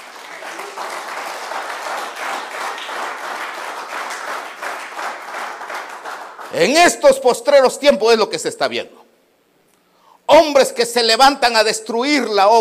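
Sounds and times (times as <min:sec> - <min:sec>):
audience clapping: 0:00.0 - 0:07.0
speech: 0:06.5 - 0:09.0, 0:10.3 - 0:12.5.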